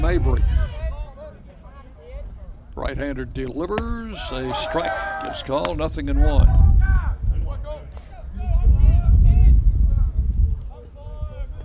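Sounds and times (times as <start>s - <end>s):
speech: 0.0s - 0.6s, 2.8s - 7.0s
wind cutting through the crowd microphone: 0.0s - 1.1s, 5.7s - 11.6s.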